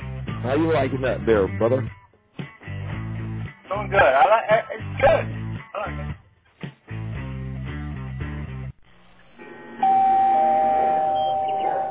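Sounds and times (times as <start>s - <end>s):
speech: 0.4s - 2.0s, 3.7s - 6.0s
doorbell chime: 9.8s - 11.8s.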